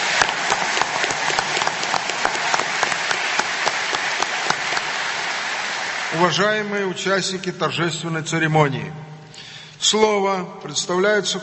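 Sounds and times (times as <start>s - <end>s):
audience applause: 0.0s - 6.7s
speech: 6.2s - 9.0s, 9.8s - 11.4s.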